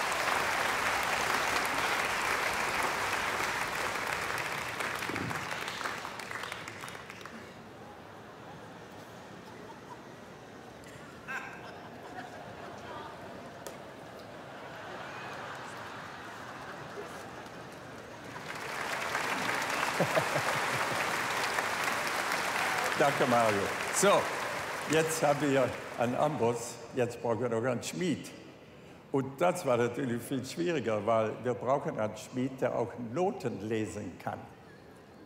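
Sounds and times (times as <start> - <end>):
audience applause: 0.0 - 7.8, 14.6 - 26.6
laughter: 8.2 - 10.5, 11.1 - 13.6, 14.2 - 18.0, 19.3 - 21.6
speech: 23.0 - 28.4, 29.1 - 34.6.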